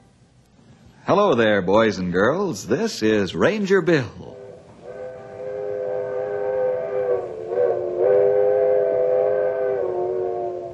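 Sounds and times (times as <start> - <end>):
speech: 1.1 - 4.4
old-fashioned coal-burning steam locomotive whistle: 4.2 - 10.7.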